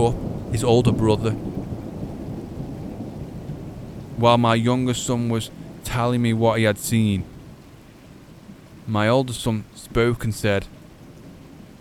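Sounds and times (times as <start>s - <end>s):
speech: 0.0s - 1.5s, 4.2s - 7.3s, 8.9s - 10.8s
low continuous rumble of thunder: 0.0s - 6.0s
steady rain: 0.0s - 11.7s.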